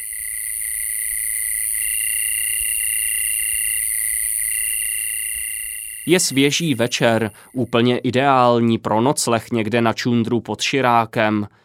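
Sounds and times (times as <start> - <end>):
crickets chirping: 0.0 - 7.9
speech: 6.1 - 11.6.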